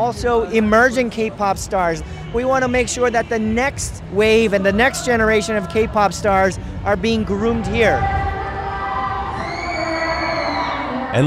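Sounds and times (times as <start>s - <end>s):
speech: 0.1s - 8.2s
convention crowd cheering and screaming: 8.8s - 11.2s.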